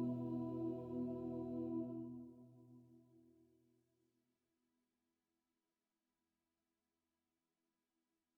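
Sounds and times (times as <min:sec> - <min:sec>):
choir singing: 0:00.0 - 0:02.2.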